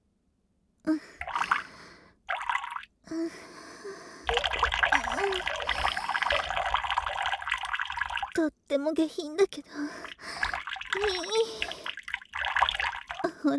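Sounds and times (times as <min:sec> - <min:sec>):
speech: 0:00.9 - 0:01.3, 0:03.1 - 0:04.1, 0:08.4 - 0:10.2, 0:10.9 - 0:11.9
person urinating: 0:01.2 - 0:01.7, 0:02.3 - 0:02.9, 0:04.3 - 0:08.4, 0:09.9 - 0:13.4.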